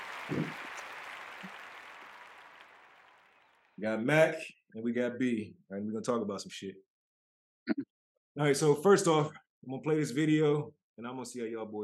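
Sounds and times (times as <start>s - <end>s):
round of applause: 0.0s - 3.8s
speech: 0.3s - 0.6s, 3.8s - 6.9s, 7.7s - 11.8s.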